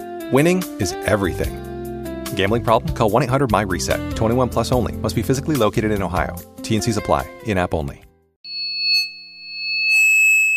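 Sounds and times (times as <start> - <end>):
speech: 0.3 - 1.7, 2.3 - 8.0
simulated tinnitus high-pitched ringing tone: 8.4 - 10.5.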